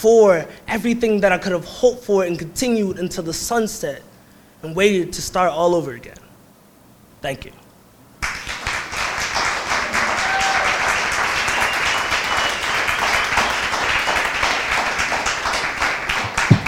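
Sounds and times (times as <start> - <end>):
speech: 0.0 - 6.2, 7.2 - 7.6
audience applause: 8.2 - 16.6.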